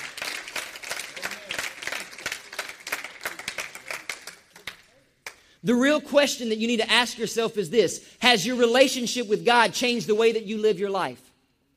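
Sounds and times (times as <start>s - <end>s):
audience clapping: 0.0s - 5.5s
speech: 5.6s - 11.3s.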